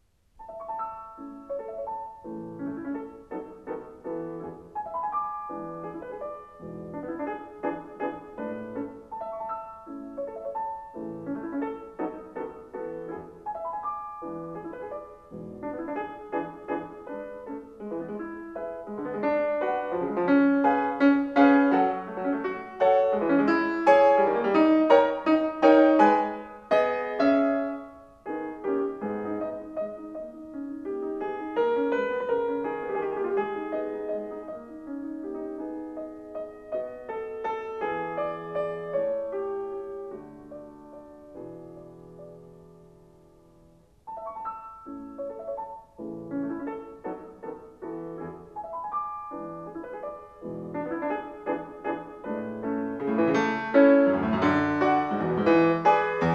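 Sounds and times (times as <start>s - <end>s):
piano sonata in A major: 0.0s - 56.3s.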